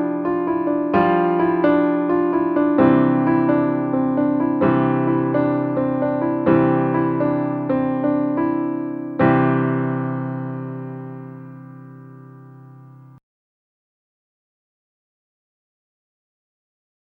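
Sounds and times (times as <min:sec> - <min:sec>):
solo piano: 0:00.0 - 0:13.2.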